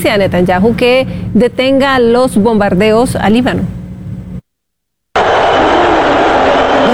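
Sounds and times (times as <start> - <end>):
speech: 0.0 - 3.8
arena crowd booing: 5.2 - 6.9.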